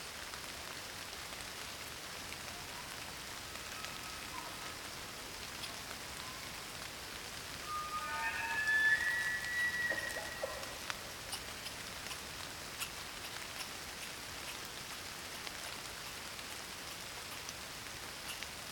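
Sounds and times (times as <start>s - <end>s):
rain shower in the wilderness: 0.0s - 18.6s.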